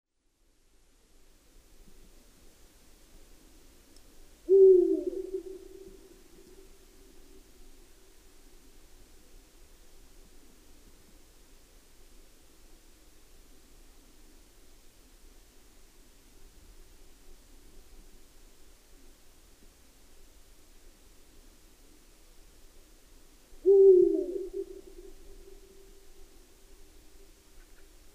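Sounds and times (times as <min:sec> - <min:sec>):
Eurasian eagle-owl hooting: 0:04.4 - 0:06.7, 0:23.6 - 0:26.2.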